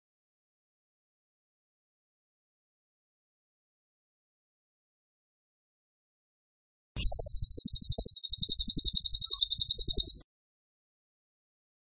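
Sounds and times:
bird song: 7.0 - 10.2.

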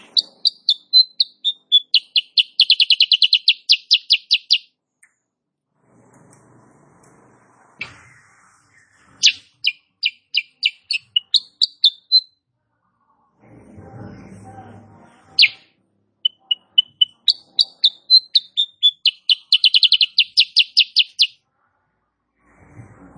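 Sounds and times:
female sooty-headed bulbul chirping song: 0.0 - 4.7, 9.2 - 12.3, 15.4 - 21.4.

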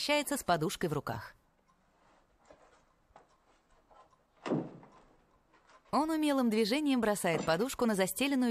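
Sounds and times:
speech: 0.0 - 1.4, 5.9 - 8.4
door opening: 2.5 - 6.0
door thud: 4.4 - 5.0.

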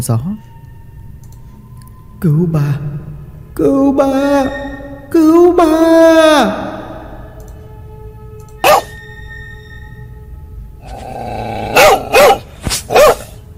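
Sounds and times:
speech: 0.0 - 0.5, 2.2 - 6.7
dog barking: 8.6 - 9.0, 11.6 - 13.4.

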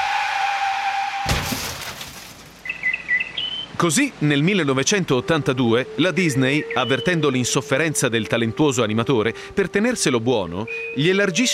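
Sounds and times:
car tires screeching: 0.0 - 2.4
car crash: 1.0 - 2.7
glass shattering: 1.2 - 2.7
debris tinkling: 1.3 - 2.8
speech: 3.8 - 11.5.

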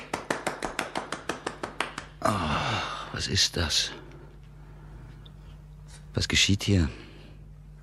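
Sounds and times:
one person clapping slowly in radio drama: 0.0 - 2.5
speech: 3.2 - 4.0, 6.2 - 7.0.

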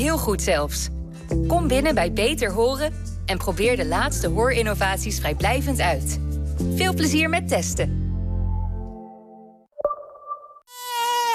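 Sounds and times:
speech: 0.0 - 8.0
mosquito buzzing: 10.7 - 11.3.

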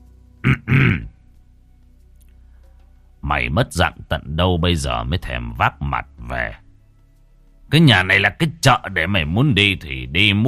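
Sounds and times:
deliberate two-part low throaty cough: 0.4 - 1.2
speech: 3.3 - 6.6, 7.7 - 10.4.

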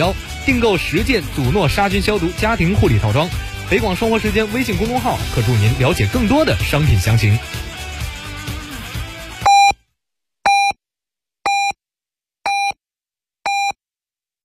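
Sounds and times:
speech: 0.0 - 7.6
radio hour time signal beeps on a Beijing station: 9.5 - 9.8, 10.5 - 10.8, 12.5 - 12.8, 13.5 - 13.8.

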